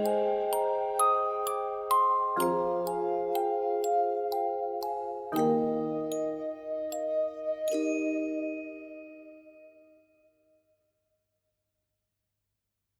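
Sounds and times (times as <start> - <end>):
music box: 0.0 - 10.0.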